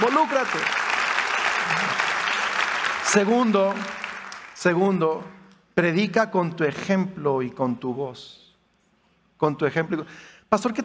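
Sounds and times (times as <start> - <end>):
church audience applauding: 0.0 - 4.8
speech: 0.1 - 1.0, 3.1 - 4.0, 4.6 - 8.4, 9.4 - 10.8.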